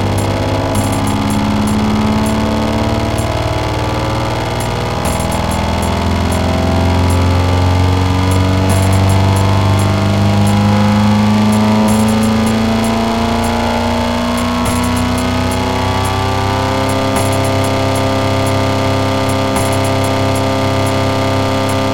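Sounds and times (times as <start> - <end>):
just intonation Indian percussion: 0.0 - 21.9.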